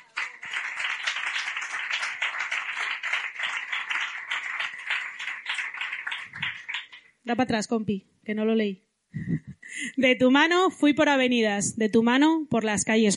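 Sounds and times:
audience applause: 0.0 - 7.1
speech: 7.3 - 9.4, 10.0 - 13.1.

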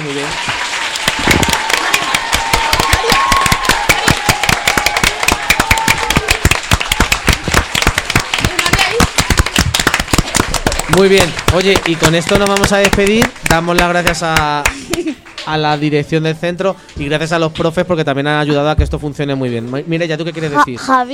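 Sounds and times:
speech: 0.0 - 0.6, 10.9 - 21.1
children applauding in auditorium: 0.0 - 15.5.

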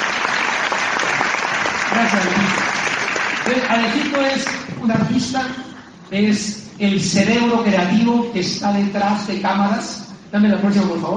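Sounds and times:
audience applause: 0.0 - 4.6
speech: 2.0 - 2.7, 3.5 - 11.1.

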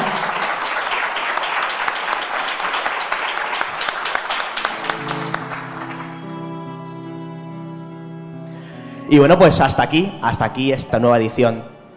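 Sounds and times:
applause: 0.0 - 6.5
speech: 9.1 - 11.7.

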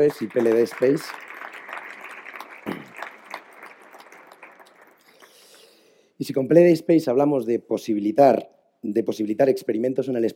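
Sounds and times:
speech: 0.0 - 1.3, 6.2 - 10.3
audience applause: 0.0 - 5.5.

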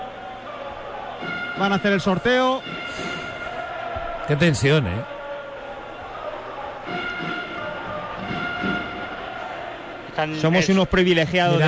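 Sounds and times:
large stadium crowd roaring: 0.0 - 11.6
speech: 1.2 - 3.2, 4.3 - 5.1, 10.2 - 11.6
sustained horn-like tones: 1.2 - 3.9, 6.9 - 9.6.

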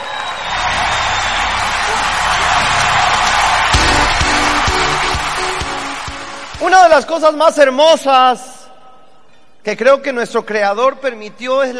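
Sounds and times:
audience applause and cheering: 0.0 - 7.6
speech: 6.8 - 8.5, 9.6 - 11.7.

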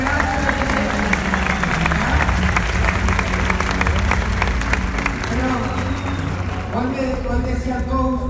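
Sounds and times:
crowd applauding: 0.0 - 8.2.

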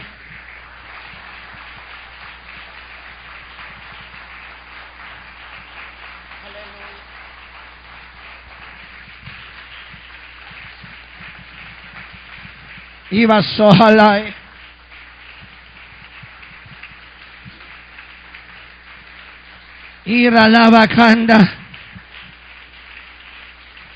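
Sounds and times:
audience applause: 0.0 - 23.9
speech: 13.1 - 14.4, 20.1 - 21.6.

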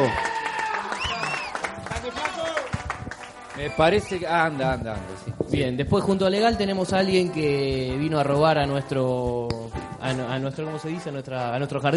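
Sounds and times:
speech: 0.0 - 0.2, 3.6 - 11.9
cheers and whistles: 0.0 - 2.7, 3.6 - 4.4
crowd applause: 0.0 - 4.3.

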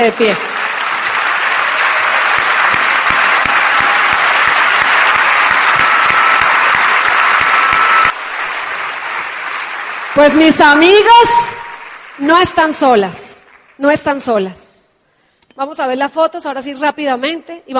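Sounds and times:
speech: 0.0 - 0.6, 10.2 - 11.6, 12.2 - 13.2, 13.8 - 14.6, 15.6 - 17.7
audience applause: 0.0 - 12.8.

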